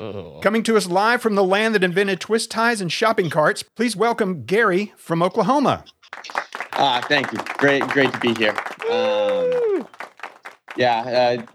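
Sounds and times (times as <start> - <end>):
speech: 0.0 - 9.2, 10.8 - 11.5
crowd applause: 6.1 - 11.5.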